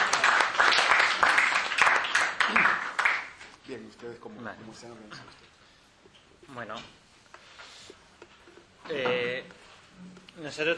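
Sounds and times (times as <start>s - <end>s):
audience in Zaragoza applauding to welcome speakers: 0.0s - 3.4s
speech: 4.0s - 5.5s, 6.5s - 7.0s, 8.9s - 10.7s.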